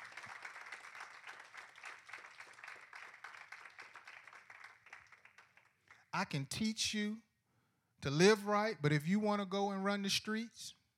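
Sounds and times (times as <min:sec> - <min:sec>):
audience hand clapping: 0:00.0 - 0:06.5
speech: 0:06.2 - 0:07.3, 0:08.0 - 0:10.8.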